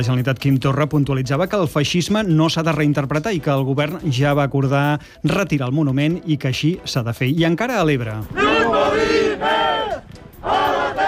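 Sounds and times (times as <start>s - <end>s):
speech: 0.0s - 11.0s
protesters chanting in Gandesa against Naturgy works: 8.3s - 11.0s.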